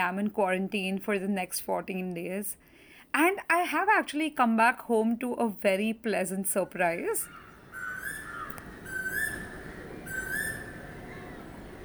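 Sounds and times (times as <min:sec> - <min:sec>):
speech: 0:00.0 - 0:07.4
soft hiss: 0:00.0 - 0:11.8
birds singing in the morning: 0:07.2 - 0:11.8.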